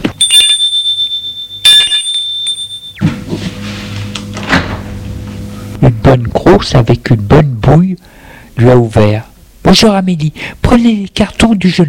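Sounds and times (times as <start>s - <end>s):
doorbell ringing: 0.1s - 3.0s
speech: 6.1s - 11.8s.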